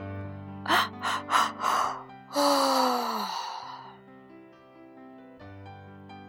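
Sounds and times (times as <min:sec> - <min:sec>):
person imitating a big drawn-out yawn: 0:00.7 - 0:04.0.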